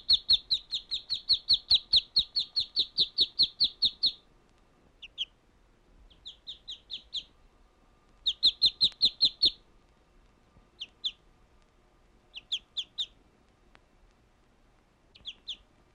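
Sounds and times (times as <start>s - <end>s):
bird chirping in bright high runs: 0.0s - 4.3s, 5.0s - 5.4s, 6.1s - 7.4s, 8.2s - 9.7s, 10.8s - 11.2s, 12.3s - 13.2s, 15.1s - 15.7s.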